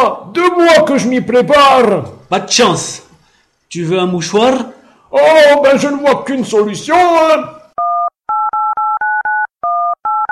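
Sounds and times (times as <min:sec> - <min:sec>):
speech: 0:00.0 - 0:03.0, 0:03.7 - 0:07.6
telephone number dialed on a touch-tone keypad: 0:07.8 - 0:10.3.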